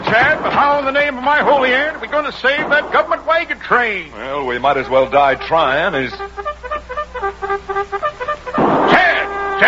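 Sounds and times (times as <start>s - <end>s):
speech: 0.1s - 6.4s
cavalry bugle call: 4.6s - 9.6s.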